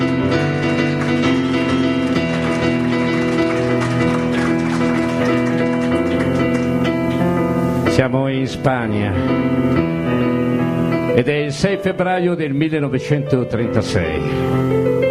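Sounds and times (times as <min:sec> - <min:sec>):
crowd applause: 0:00.0 - 0:07.3
sustained held musical notes: 0:00.0 - 0:15.0
speech: 0:08.5 - 0:10.3, 0:11.2 - 0:15.0.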